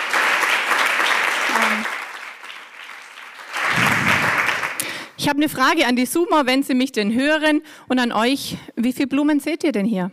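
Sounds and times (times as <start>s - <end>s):
audience applause: 0.0s - 5.1s
speech: 5.2s - 10.1s.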